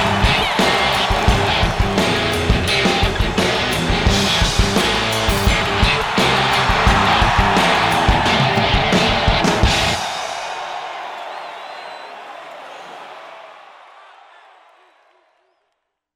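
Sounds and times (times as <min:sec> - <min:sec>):
football rock music: 0:00.0 - 0:10.4.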